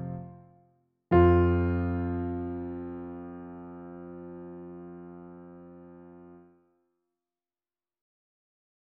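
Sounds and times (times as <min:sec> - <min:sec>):
piano: 0:00.0 - 0:06.7.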